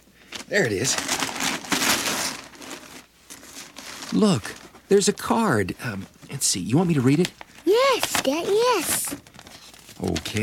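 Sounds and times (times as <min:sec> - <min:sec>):
paper crinkling as a parcel is unwrapped: 0:00.3 - 0:04.8, 0:06.9 - 0:10.4
speech: 0:00.5 - 0:01.3, 0:04.1 - 0:07.4, 0:08.0 - 0:09.2, 0:10.0 - 0:10.4.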